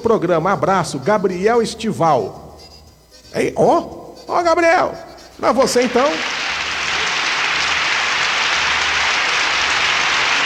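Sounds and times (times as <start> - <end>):
speech: 0.0 - 2.4, 3.3 - 6.4
applause: 5.9 - 10.4.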